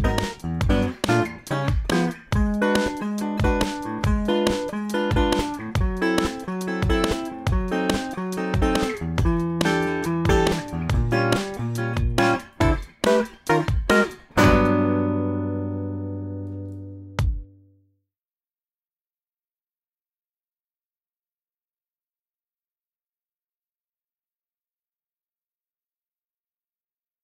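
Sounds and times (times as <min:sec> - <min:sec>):
jazz music: 0:00.0 - 0:16.6.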